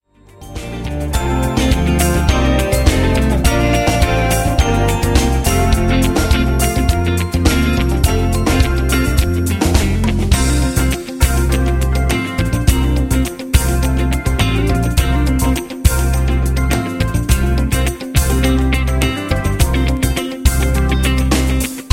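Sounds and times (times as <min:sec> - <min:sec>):
music playback: 0:00.1 - 0:21.9.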